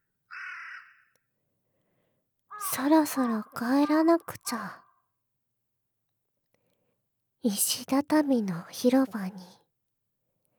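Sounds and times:
crow cawing at dusk: 0.3s - 1.2s, 2.5s - 4.2s
speech: 2.8s - 4.8s, 7.4s - 9.6s.

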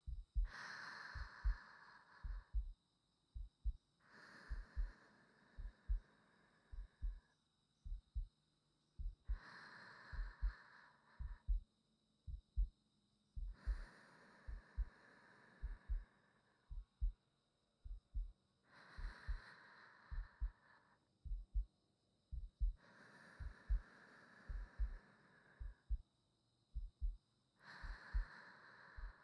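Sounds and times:
new wife's heartbeat: 0.0s - 3.8s, 4.4s - 5.0s, 5.6s - 6.1s, 6.7s - 8.3s, 9.0s - 9.5s, 10.1s - 10.6s, 11.2s - 11.7s, 12.3s - 12.8s, 13.4s - 13.9s, 14.5s - 14.9s, 15.6s - 16.1s, 16.7s - 17.2s, 17.8s - 18.4s, 19.0s - 19.5s, 20.1s - 20.6s, 21.2s - 22.8s, 23.4s - 23.9s, 24.5s - 25.0s, 25.6s - 26.1s, 26.7s - 27.2s, 27.8s - 28.3s, 29.0s - 29.2s
sleeping breathing: 0.4s - 2.7s, 4.0s - 7.4s, 9.2s - 11.5s, 13.4s - 17.2s, 18.6s - 21.0s, 22.7s - 26.0s, 27.6s - 29.2s.

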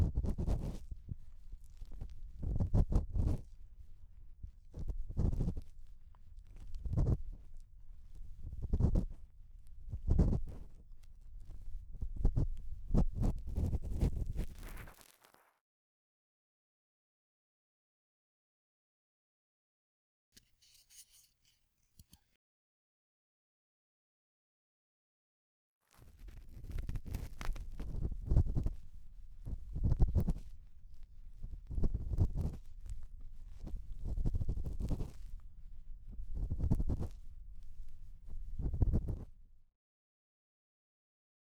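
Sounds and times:
bamboo ear pick scratching deep in the left ear: 0.0s - 14.9s, 26.1s - 39.4s.

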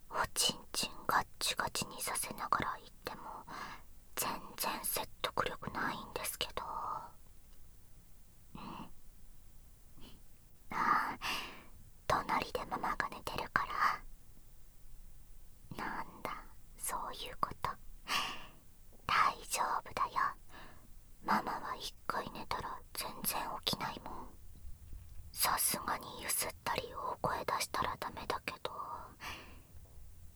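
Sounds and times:
person whispering: 0.1s - 3.5s, 4.2s - 7.2s, 8.6s - 8.9s, 10.0s - 11.4s, 12.1s - 14.0s, 15.7s - 17.8s, 19.1s - 20.5s, 21.2s - 24.4s, 25.4s - 29.2s.

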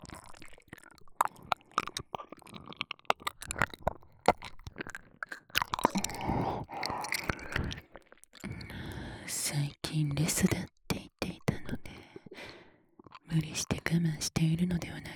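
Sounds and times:
ear licking sounds: 0.0s - 8.4s
oral sex sounds: 0.0s - 14.8s.

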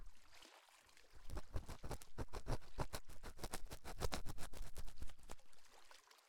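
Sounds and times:
ear cleaning on right ear: 1.3s - 5.1s.

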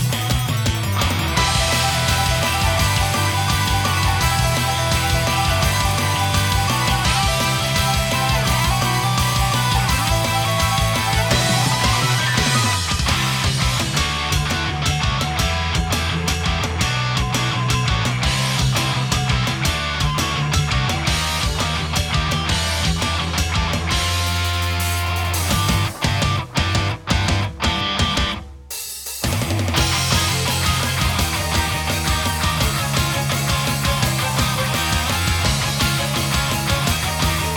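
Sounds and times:
off vocal instrumental music: 0.0s - 37.5s.

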